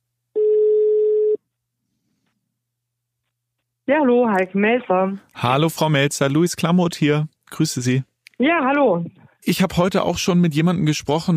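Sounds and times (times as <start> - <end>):
telephone ringing tone of an outgoing call: 0.4 - 1.4
speech: 3.9 - 11.3.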